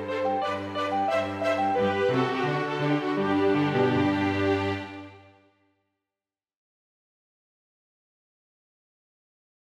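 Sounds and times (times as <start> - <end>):
two violins cello and piano playing a burlesque piece: 0.0 - 5.4.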